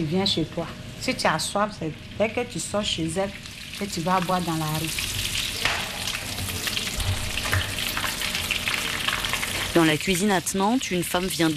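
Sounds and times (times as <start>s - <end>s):
speech: 0.0s - 5.3s, 9.8s - 11.5s
chicken pieces frying in boiling oil: 2.8s - 11.5s.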